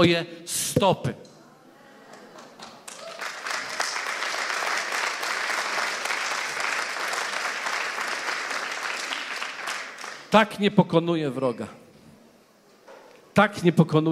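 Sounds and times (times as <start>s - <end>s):
speech: 0.0s - 1.3s, 10.3s - 11.8s, 13.4s - 14.1s
people clapping: 2.1s - 10.4s.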